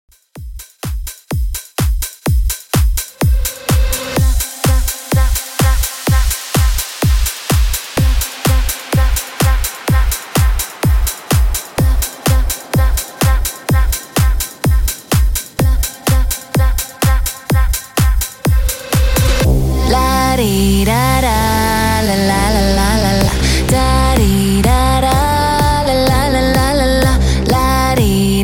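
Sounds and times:
club edit outro music: 0.1 - 28.4.

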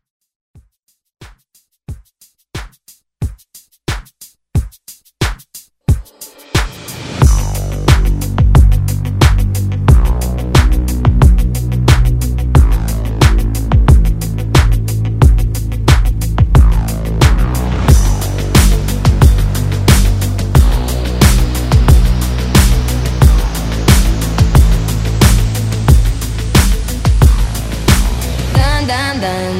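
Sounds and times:
Top40 pop music: 5.9 - 29.5.

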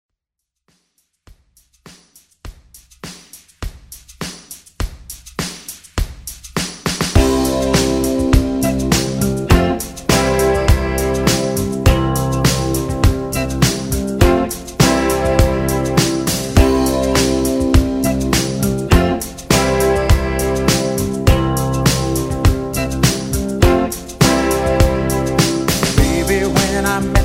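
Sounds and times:
80s pop country music: 7.2 - 27.2.

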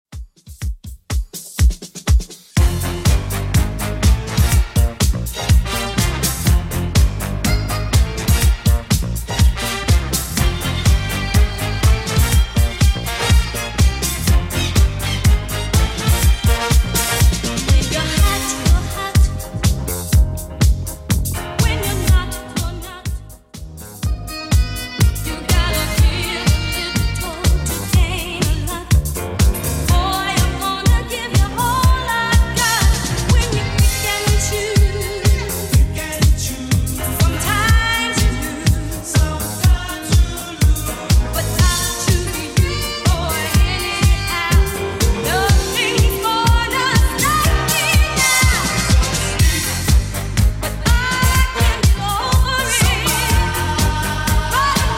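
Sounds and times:
70s style track: 0.1 - 54.9.

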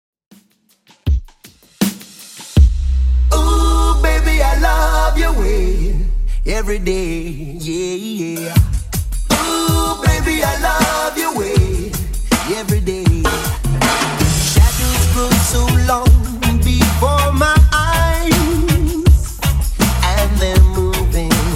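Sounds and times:
90s reggae music: 0.3 - 21.5.

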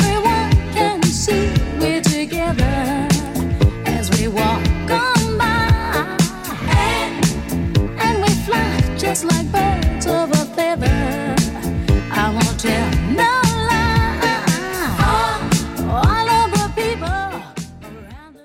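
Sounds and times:
70s style music loop at 116 bpm: 0.0 - 18.4.

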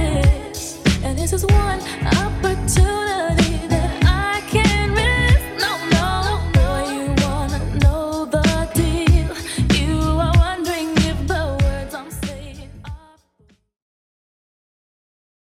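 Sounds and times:
90s Redrum drum machine beat: 0.0 - 13.0.

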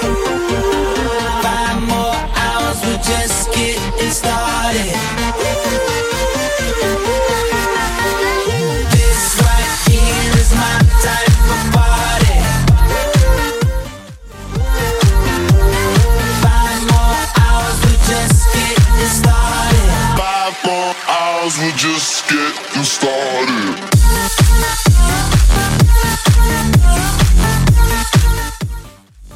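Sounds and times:
128 bpm music track: 0.0 - 29.3.

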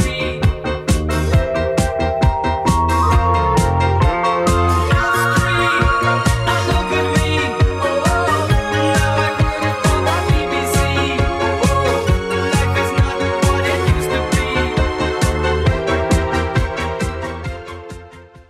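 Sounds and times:
80s drum machine beat: 0.0 - 17.9.

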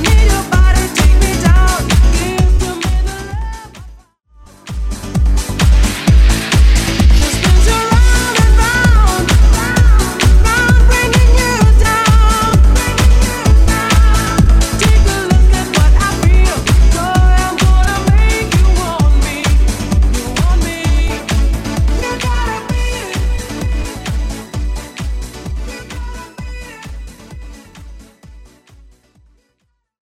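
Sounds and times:
drum loop: 0.0 - 4.0, 4.6 - 28.8.

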